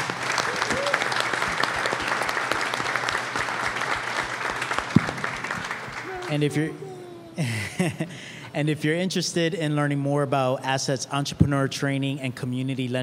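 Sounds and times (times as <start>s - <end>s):
live audience applause: 0.0s - 6.7s
laughter: 6.2s - 8.3s
speech: 6.3s - 13.0s.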